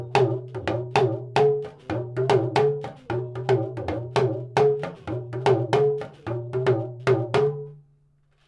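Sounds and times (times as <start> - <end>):
lead lunga drumming: 0.0 - 7.8.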